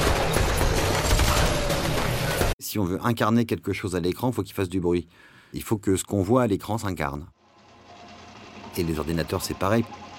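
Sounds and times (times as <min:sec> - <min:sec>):
gunfire fusillade sound effect: 0:00.0 - 0:02.6
speech: 0:02.8 - 0:07.4, 0:08.8 - 0:10.0.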